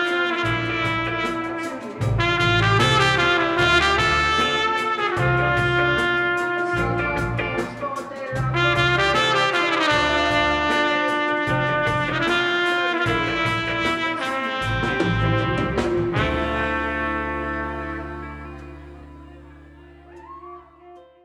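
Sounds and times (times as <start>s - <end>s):
processed trumpet: 0.0s - 21.2s.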